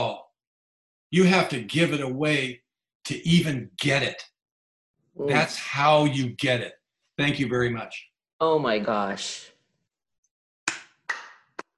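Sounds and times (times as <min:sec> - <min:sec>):
speech: 0:01.1 - 0:04.3, 0:05.2 - 0:09.5
sharp claps: 0:10.7 - 0:11.7.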